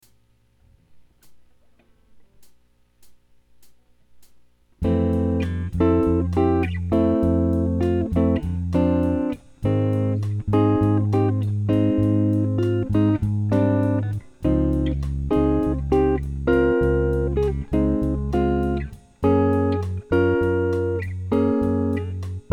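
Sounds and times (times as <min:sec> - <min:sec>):
jazz guitar: 0:04.8 - 0:22.5.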